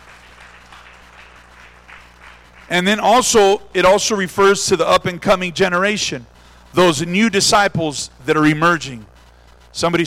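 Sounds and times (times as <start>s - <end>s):
church congregation hand clapping: 0.0s - 3.5s
low steady hum: 0.0s - 10.0s
speech: 2.7s - 9.1s, 9.8s - 10.0s.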